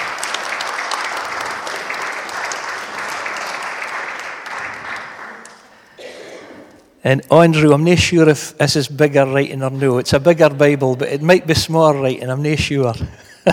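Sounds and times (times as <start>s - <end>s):
audience clapping: 0.0s - 6.0s
speech: 7.0s - 13.5s.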